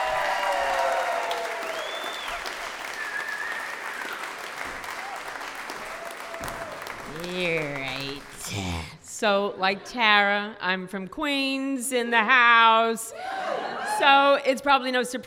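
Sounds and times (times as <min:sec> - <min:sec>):
audience applause: 0:00.0 - 0:09.0
faint whistles: 0:01.7 - 0:04.0
speech: 0:07.1 - 0:15.2.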